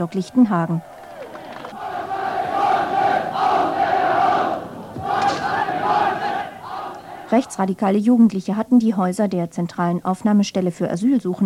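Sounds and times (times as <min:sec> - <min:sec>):
speech: 0:00.0 - 0:01.0, 0:07.3 - 0:11.4
crowd cheering during riot: 0:00.0 - 0:07.8.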